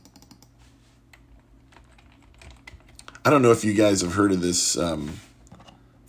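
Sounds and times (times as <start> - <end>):
typing a Google search on a computer keyboard: 0.0 - 0.5, 1.1 - 3.2
speech: 3.2 - 5.3.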